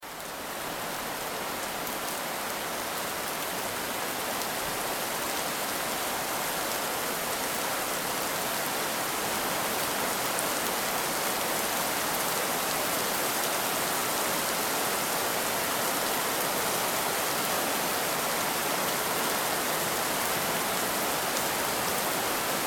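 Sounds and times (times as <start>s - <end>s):
heavy rain: 0.0s - 22.6s.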